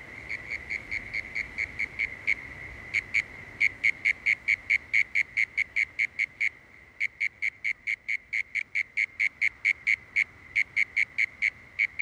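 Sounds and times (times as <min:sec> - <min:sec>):
crickets chirping at Woorim beach: 0:00.0 - 0:11.9.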